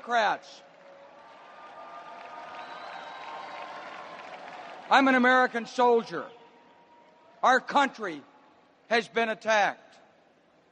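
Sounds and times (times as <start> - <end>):
speech: 0.0 - 0.7, 4.9 - 6.4, 7.4 - 8.3, 8.9 - 9.9
convention hall crowd applauding: 0.0 - 6.1.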